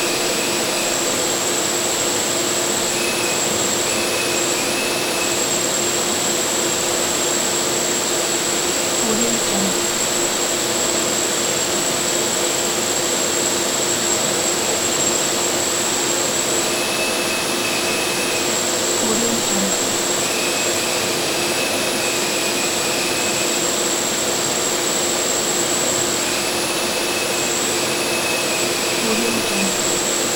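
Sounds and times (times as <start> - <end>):
jet engine: 0.0 - 30.3.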